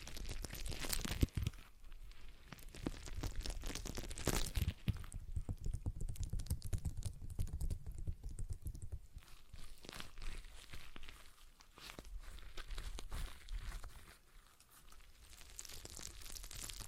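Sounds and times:
stress ball squeezed and worked: 0:00.0 - 0:16.8
sharp clicks and snaps: 0:02.7 - 0:09.2.

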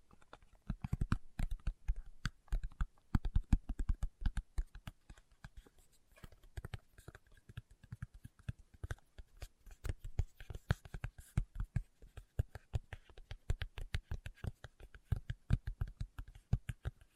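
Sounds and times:
fingertips tapping: 0:00.0 - 0:17.1.

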